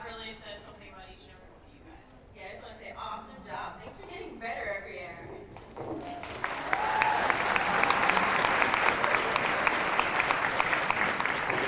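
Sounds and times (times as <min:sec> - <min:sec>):
audience clapping: 0:06.0 - 0:11.6.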